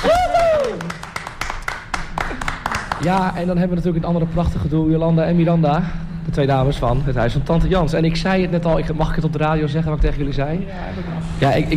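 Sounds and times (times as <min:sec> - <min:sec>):
audience applause at a thank-you gathering: 0:00.0 - 0:03.4
speech: 0:03.0 - 0:11.7.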